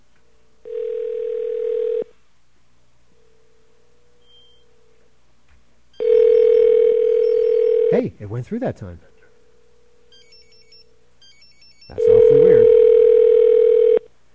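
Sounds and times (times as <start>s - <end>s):
telephone dial tone and ringing: 0.6s - 2.1s, 5.9s - 8.0s, 10.0s - 14.1s
speech: 8.2s - 9.1s.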